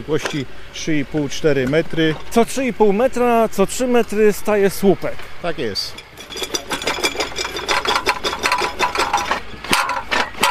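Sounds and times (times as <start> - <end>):
speech: 0.0 - 6.4
tractor-mounted drilling rig boring into the ground: 5.8 - 10.4.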